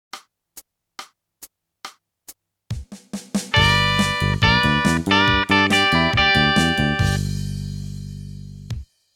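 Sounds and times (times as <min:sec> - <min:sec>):
country music: 0:03.5 - 0:07.4.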